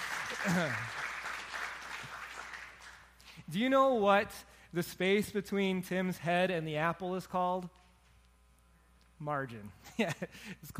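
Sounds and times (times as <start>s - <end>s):
audience applause: 0.0s - 3.1s
speech: 0.4s - 1.0s, 3.5s - 7.8s, 9.2s - 10.7s.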